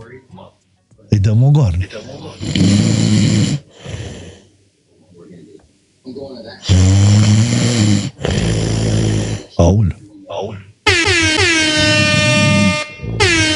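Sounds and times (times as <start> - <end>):
speech: 1.1 - 3.6, 6.1 - 8.1, 9.6 - 10.6
person snoring: 2.3 - 4.4, 6.6 - 9.7, 11.8 - 13.4.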